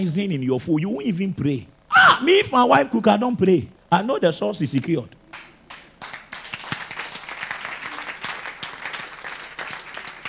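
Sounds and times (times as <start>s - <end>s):
speech: 0.0s - 5.2s
audience clapping: 5.3s - 10.2s.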